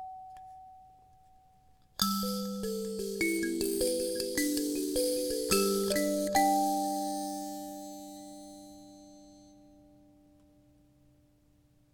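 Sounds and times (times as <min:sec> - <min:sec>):
kalimba in G: 0:02.0 - 0:08.9.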